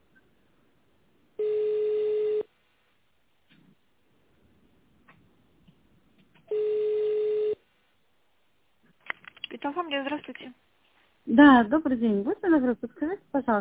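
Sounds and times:
telephone ringback tone while waiting on hold: 1.4 - 2.5, 6.5 - 7.6
speech: 9.6 - 13.6.

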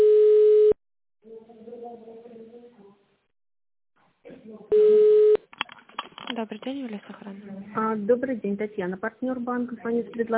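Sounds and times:
telephone ringback tone while a call connects: 0.0 - 0.8, 4.7 - 5.4
speech: 6.4 - 10.3.

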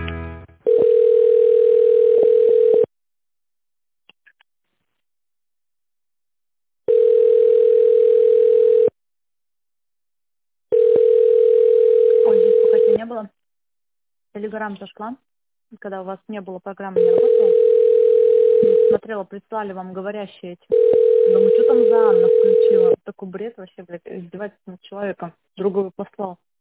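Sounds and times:
telephone ringback tone: 0.7 - 2.9, 6.9 - 8.9, 10.7 - 13.0, 17.0 - 19.0, 20.7 - 23.0
speech: 14.5 - 17.8, 18.6 - 26.5.

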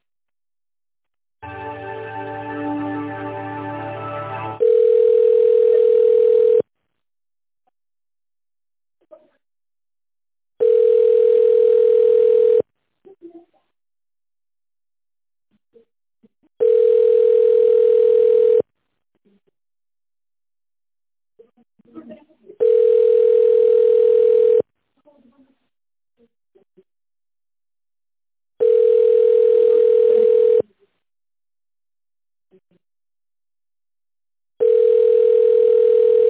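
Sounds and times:
telephone ringback tone while a call is transferred: 4.6 - 6.6, 10.6 - 12.6, 16.6 - 18.6, 22.6 - 24.6, 28.6 - 30.6, 34.6 - 36.2.

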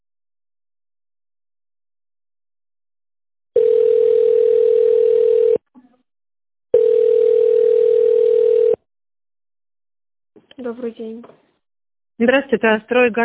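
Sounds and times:
telephone ringing tone: 3.6 - 5.6, 6.7 - 8.9
speech: 10.7 - 11.4, 12.2 - 13.2.

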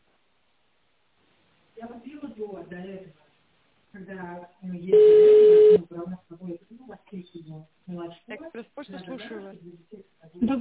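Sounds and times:
speech: 1.8 - 3.2, 3.9 - 10.5
outgoing telephone call ringing tone: 5.0 - 5.8.

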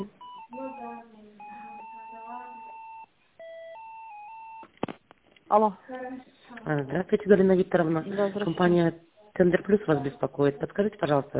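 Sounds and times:
electronic telephone line tones while a call is transferred: 0.0 - 4.7
speech: 5.5 - 11.3.

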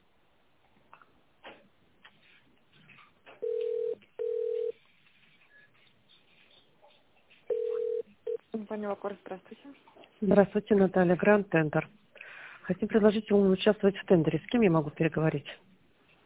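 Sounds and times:
telephone tones dialing an extension: 3.4 - 4.8, 7.5 - 8.4
speech: 8.6 - 12.0, 12.7 - 15.6.

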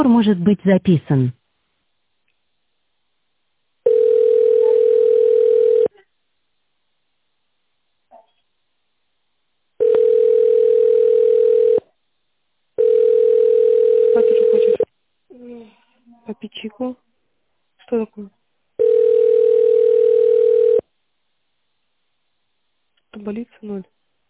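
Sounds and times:
speech: 0.0 - 1.4, 16.3 - 17.1, 17.9 - 18.9, 23.1 - 24.0
faint small noises: 1.4 - 24.2
telephone line tone while holding: 3.9 - 5.9, 9.8 - 11.8, 12.8 - 14.9, 18.8 - 20.8.

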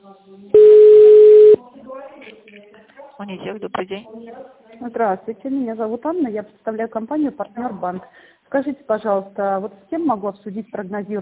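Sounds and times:
telephone ringback tone while a call is transferred: 0.6 - 1.6
speech: 3.2 - 11.2.

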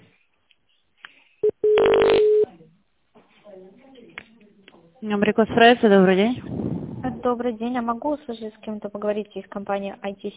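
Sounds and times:
telephone keypad tones: 1.4 - 2.4
speech: 5.0 - 6.6, 7.2 - 10.3.

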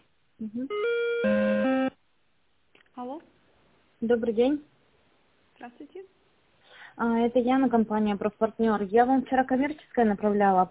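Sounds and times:
speech: 0.4 - 1.4, 3.0 - 3.4, 4.0 - 4.7, 5.6 - 6.2, 7.0 - 10.6
electronic telephone ringing while a call is transferred: 0.7 - 2.0.

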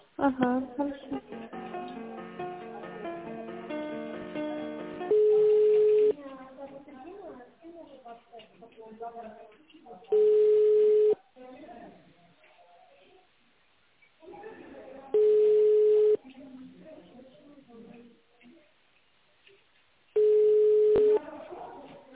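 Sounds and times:
telephone line tones while a call is transferred to a secretary: 5.1 - 6.1, 10.2 - 11.2, 15.2 - 16.2, 20.2 - 21.2.

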